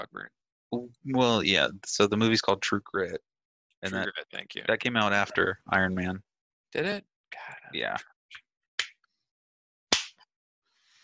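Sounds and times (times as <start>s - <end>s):
speech: 0.0s - 8.4s
hands clapping: 7.9s - 9.0s, 9.9s - 10.2s.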